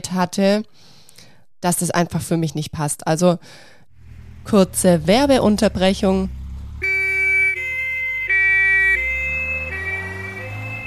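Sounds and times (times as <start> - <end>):
speech: 0.1 - 1.0, 1.6 - 3.8, 4.4 - 6.4
low rumble of road traffic: 3.9 - 10.8
ambulance siren two-tone: 6.6 - 10.8.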